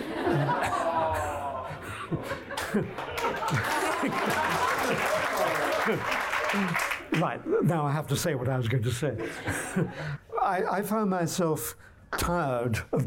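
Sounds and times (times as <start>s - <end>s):
crowd chuckling: 0.0s - 7.0s
speech: 2.1s - 13.0s
audience applause: 2.5s - 7.3s.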